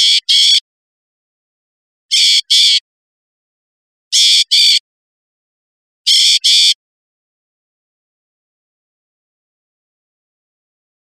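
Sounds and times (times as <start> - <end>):
loggerhead shrike buzzy calls: 0.0 - 0.6, 2.1 - 2.8, 4.2 - 4.8, 6.1 - 6.8.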